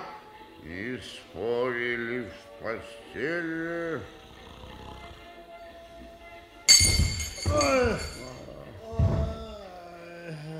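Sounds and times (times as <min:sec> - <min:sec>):
speech: 0:00.6 - 0:04.2
judge falling off a chair with a loud crash: 0:06.7 - 0:08.3
glassy clinks: 0:06.7 - 0:08.5.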